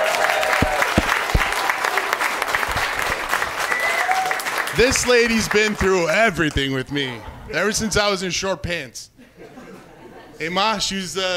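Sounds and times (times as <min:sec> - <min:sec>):
audience applause: 0:00.0 - 0:06.1
speech: 0:04.8 - 0:09.1, 0:10.4 - 0:11.3
laughter: 0:09.2 - 0:10.5.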